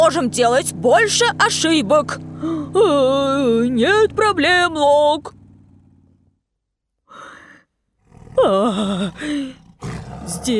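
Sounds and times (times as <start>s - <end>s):
speech: 0.1s - 5.4s, 8.4s - 10.5s
big cat roaring: 8.0s - 10.5s.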